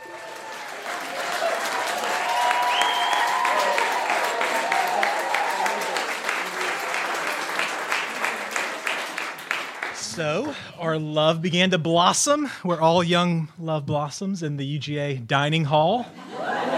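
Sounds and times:
live audience applauding: 0.0 - 10.7
speech: 10.2 - 16.2
laughter: 16.1 - 16.7.

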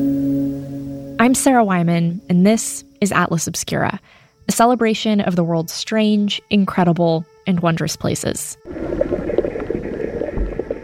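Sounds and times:
speech: 1.2 - 9.1
boiling river water in the Amazon: 8.7 - 10.8.

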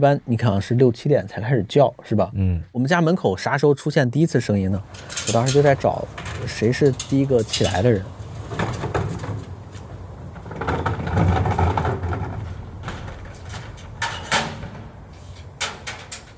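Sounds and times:
speech: 0.0 - 8.8
garbage truck collecting roadside bins: 4.3 - 16.3.

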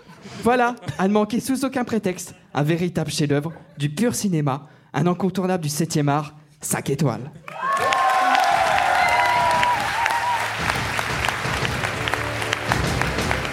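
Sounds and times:
speech: 0.4 - 7.5
applause and cheering: 7.4 - 13.5.

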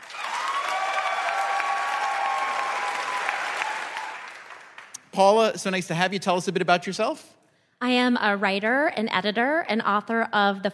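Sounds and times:
game show audience applause: 0.0 - 5.0
speech: 5.2 - 10.7.

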